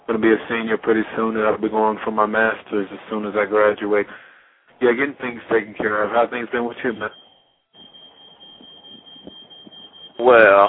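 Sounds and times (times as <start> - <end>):
speech: 0.1 - 7.2, 10.2 - 10.6
fire alarm going off: 6.9 - 10.6.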